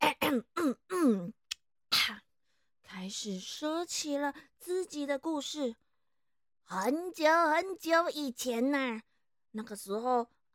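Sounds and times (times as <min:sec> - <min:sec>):
voice performer imitating throat clearing as the flying monkey king: 0:00.0 - 0:02.2
speech: 0:00.3 - 0:01.4, 0:03.1 - 0:05.8, 0:06.7 - 0:10.5.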